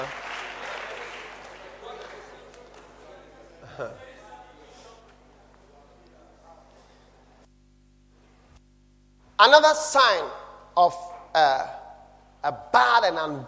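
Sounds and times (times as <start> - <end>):
audience clapping during a talk on attitude: 0.0 - 3.4
speech: 3.8 - 4.1, 9.4 - 11.8, 12.4 - 13.4.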